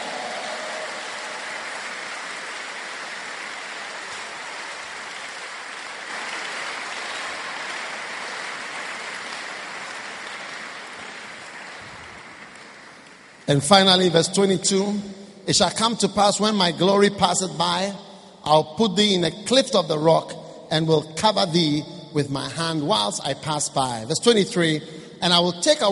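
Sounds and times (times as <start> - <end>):
audience clapping: 0.0 - 14.1
speech: 13.5 - 25.8.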